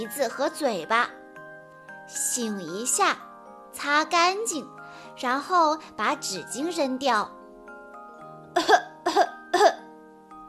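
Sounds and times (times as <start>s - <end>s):
speech: 0.0s - 1.2s, 2.1s - 7.4s, 8.6s - 9.3s
coughing: 8.6s - 9.9s.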